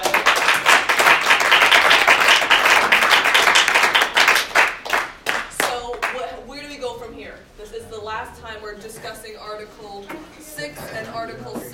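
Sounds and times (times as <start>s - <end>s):
crowd applause: 0.0s - 5.5s.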